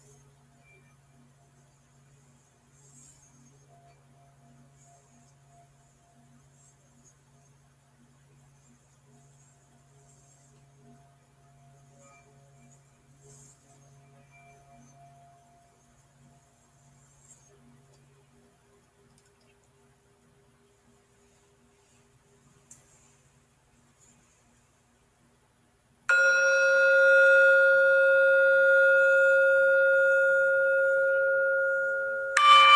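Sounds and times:
faint low hum: 0:00.0 - 0:32.7
singing bowl ringing: 0:26.1 - 0:32.7.

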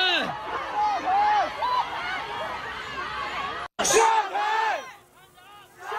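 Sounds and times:
protest crowd chanting and yelling: 0:00.0 - 0:05.9.

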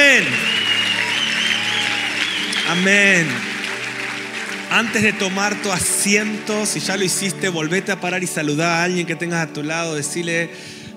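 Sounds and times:
audience applauding: 0:00.0 - 0:08.6
speech: 0:02.7 - 0:03.5, 0:04.7 - 0:10.8.

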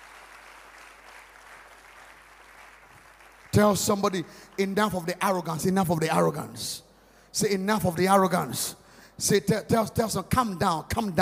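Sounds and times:
audience clapping: 0:00.0 - 0:05.4
speech: 0:03.6 - 0:11.2.

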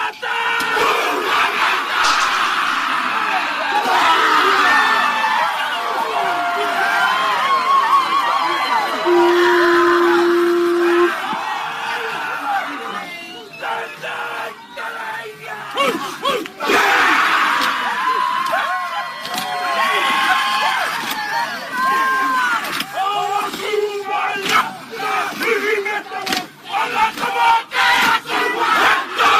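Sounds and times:
Maori men chanting a war dance at a protest against mandates: 0:00.0 - 0:07.2, 0:10.2 - 0:18.0, 0:21.8 - 0:29.3
crowd noise at a protest: 0:00.0 - 0:29.3.

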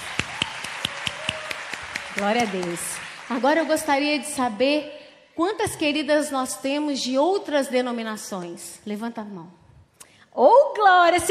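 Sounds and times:
audience applause: 0:00.0 - 0:04.0
speech: 0:02.2 - 0:09.6, 0:10.3 - 0:11.2.

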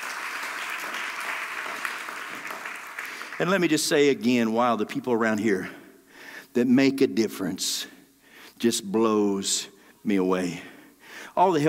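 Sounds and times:
audience clapping: 0:00.0 - 0:04.0
speech: 0:03.4 - 0:05.8, 0:06.6 - 0:08.0, 0:08.6 - 0:10.7, 0:11.3 - 0:11.6.

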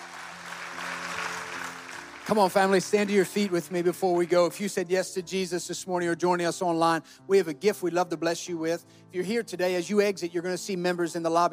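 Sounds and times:
audience clapping: 0:00.0 - 0:04.6
speech: 0:02.3 - 0:11.5.

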